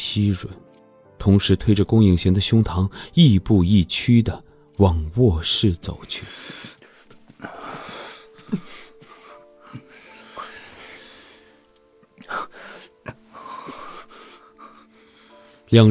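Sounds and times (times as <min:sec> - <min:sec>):
speech: 0:00.1 - 0:00.6, 0:01.2 - 0:06.7, 0:15.7 - 0:15.9
heavy panting breaths during kissing: 0:06.2 - 0:15.7.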